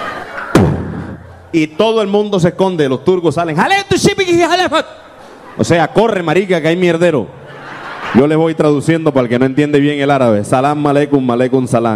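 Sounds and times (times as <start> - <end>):
bomb explosion sound effect from a 3D show: 0.5 - 1.3
speech: 1.5 - 5.0, 5.6 - 7.4, 8.1 - 11.9
laughter: 7.4 - 8.6.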